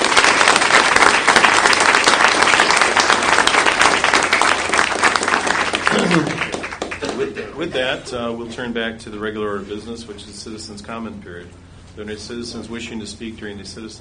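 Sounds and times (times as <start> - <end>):
audience round of applause: 0.0 - 7.3
speech: 7.3 - 13.9.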